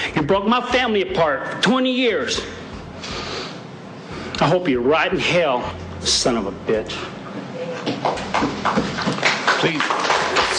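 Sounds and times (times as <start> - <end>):
speech: 0.2 - 2.6, 4.4 - 7.2, 9.6 - 10.0
applause in a courtroom: 8.0 - 10.5.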